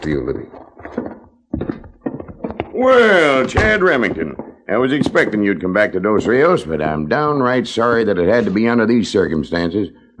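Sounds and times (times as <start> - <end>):
speech: 0.0 - 0.7, 2.8 - 10.1
door closing: 0.0 - 5.6.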